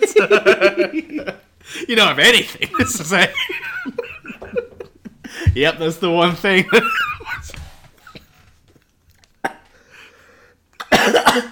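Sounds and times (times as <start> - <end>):
laughter: 0.0 - 8.4
speech: 0.2 - 1.3, 1.9 - 4.0, 5.6 - 7.0
person coughing after a drink went down the wrong way: 9.4 - 9.8, 10.8 - 11.5.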